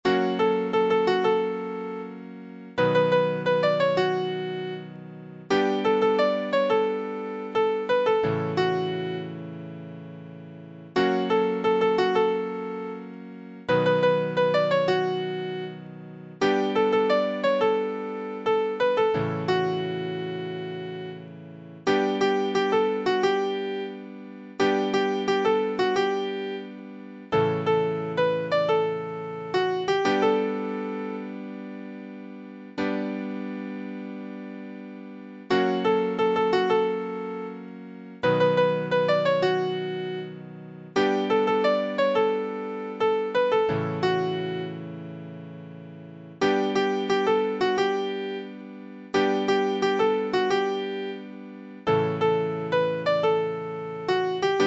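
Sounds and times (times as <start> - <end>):
piano: 0.0 - 54.6.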